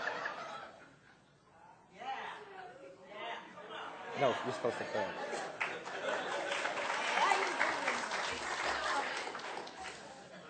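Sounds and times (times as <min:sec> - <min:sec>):
laughter: 0:00.0 - 0:00.9, 0:03.8 - 0:10.4
speech: 0:04.2 - 0:05.6
audience clapping: 0:05.4 - 0:10.3.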